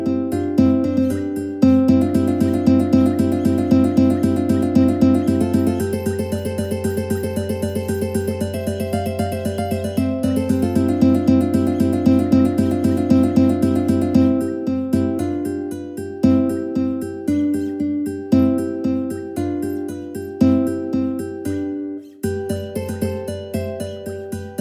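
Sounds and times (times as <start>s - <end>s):
ukulele trio playing: 0.0s - 24.5s.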